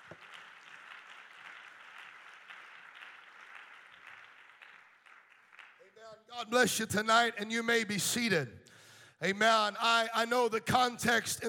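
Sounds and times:
audience clapping hands: 0:00.0 - 0:06.9
speech: 0:06.0 - 0:08.6, 0:09.2 - 0:11.4.

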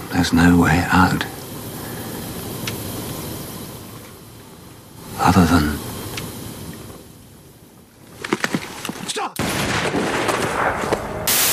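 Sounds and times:
speech: 0:00.1 - 0:01.4, 0:05.3 - 0:05.8
gunshot as a man shoots himself in a drama: 0:09.4 - 0:11.5.

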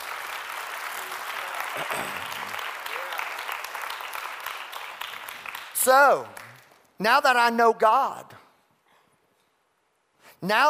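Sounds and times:
audience clapping hands: 0:00.0 - 0:07.0
speech: 0:05.8 - 0:06.4, 0:07.0 - 0:08.4, 0:10.4 - 0:10.6.

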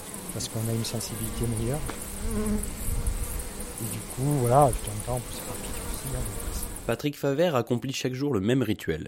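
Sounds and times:
Western honey bees buzzing: 0:00.0 - 0:07.0
speech: 0:00.4 - 0:03.0, 0:03.8 - 0:09.0.

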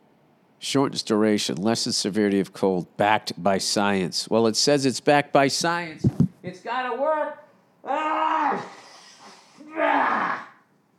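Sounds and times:
speech: 0:00.6 - 0:08.9, 0:09.8 - 0:10.4
sneeze: 0:08.3 - 0:10.6.

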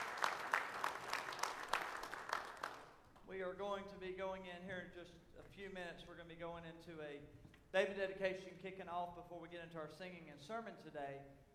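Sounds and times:
audience clapping: 0:00.0 - 0:03.3
speech: 0:03.4 - 0:11.4.

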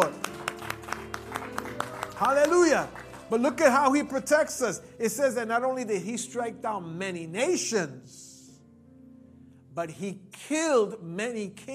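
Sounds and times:
hands clapping: 0:00.0 - 0:04.3
speech: 0:02.2 - 0:08.3, 0:09.8 - 0:11.7.

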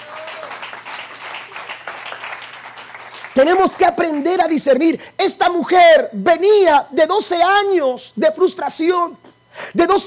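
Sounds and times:
audience applause: 0:00.0 - 0:03.6
speech: 0:03.4 - 0:10.0.

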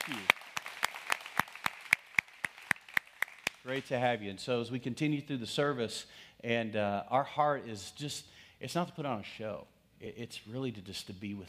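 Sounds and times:
clapping: 0:00.0 - 0:03.9
speech: 0:03.7 - 0:11.4.

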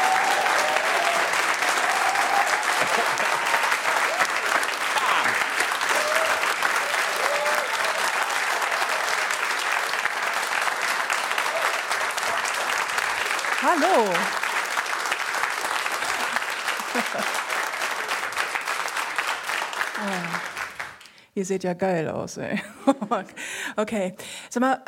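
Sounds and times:
faint cheers and whistles: 0:00.0 - 0:09.4
large audience applause: 0:00.0 - 0:21.1
speech: 0:21.4 - 0:24.8
laughter: 0:22.4 - 0:24.6.

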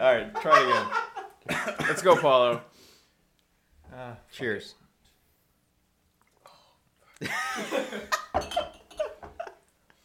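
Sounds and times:
speech: 0:00.0 - 0:02.8, 0:03.9 - 0:04.8, 0:07.2 - 0:08.7
person laughing: 0:00.4 - 0:02.3, 0:07.2 - 0:09.6
person gagging and coughing after tasting: 0:01.5 - 0:02.7.

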